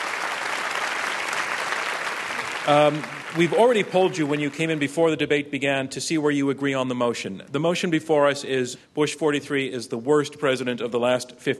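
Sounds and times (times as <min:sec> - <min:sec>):
audience applause: 0:00.0 - 0:04.9
speech: 0:02.6 - 0:11.5.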